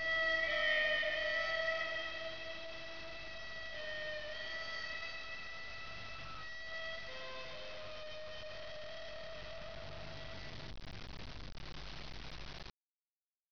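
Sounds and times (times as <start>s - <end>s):
harmonica: 0.0s - 10.5s.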